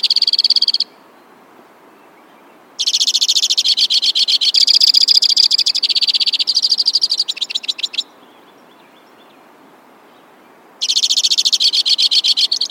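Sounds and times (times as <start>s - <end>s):
White-winged crossbill trilling: 2.8s - 8.1s, 10.8s - 12.7s.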